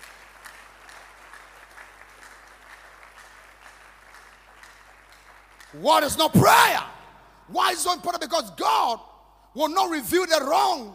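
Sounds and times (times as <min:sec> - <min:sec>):
crowd clapping: 0:00.0 - 0:06.6
speech: 0:05.7 - 0:10.9.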